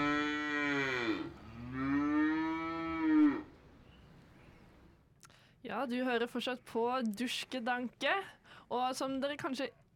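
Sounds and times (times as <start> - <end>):
cow mooing: 0.0 - 3.5
speech: 5.7 - 9.8.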